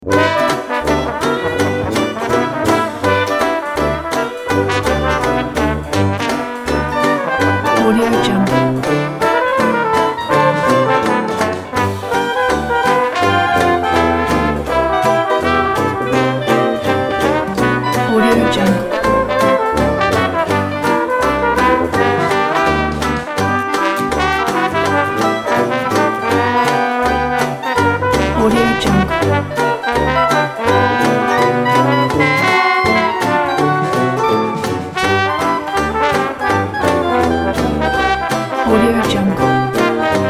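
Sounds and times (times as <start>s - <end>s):
Dixieland New Orleans jazz band playing: 0.0s - 40.2s.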